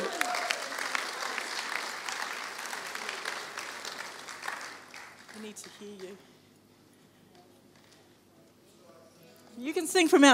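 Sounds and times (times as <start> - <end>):
audience applause: 0.0 - 6.2
speech: 5.5 - 6.4, 9.6 - 10.3.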